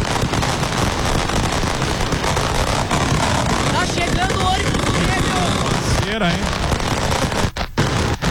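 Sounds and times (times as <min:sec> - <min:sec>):
flares and firecrackers popping: 0:00.0 - 0:08.2
football fans roaring on street: 0:02.3 - 0:06.6
speech: 0:06.2 - 0:06.7.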